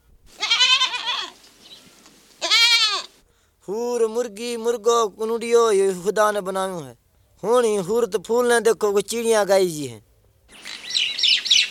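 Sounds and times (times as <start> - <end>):
goat bleating: 0.4 - 1.4, 2.4 - 3.1
speech: 3.7 - 10.1.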